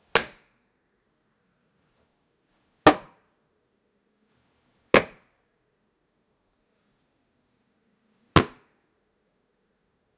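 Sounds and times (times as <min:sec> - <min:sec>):
black hole punch: 0:02.8 - 0:03.2, 0:08.4 - 0:08.7.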